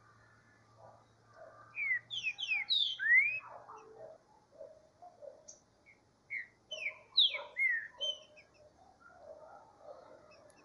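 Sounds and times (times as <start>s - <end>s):
green-winged saltator song: 1.7s - 3.6s, 5.5s - 8.6s.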